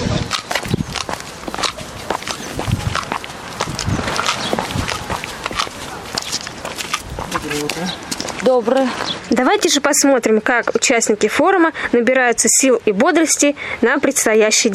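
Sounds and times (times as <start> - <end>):
group of people walking, footsteps: 0.0 - 9.8
speech: 8.5 - 14.7.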